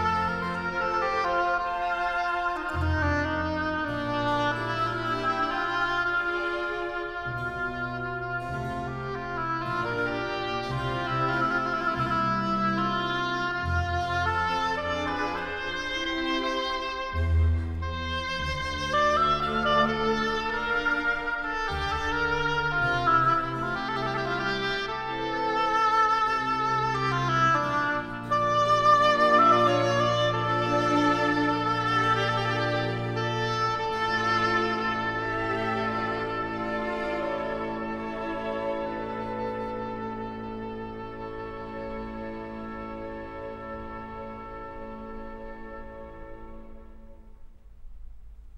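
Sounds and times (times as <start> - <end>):
oboe concerto in D minor: 0.0 - 48.5.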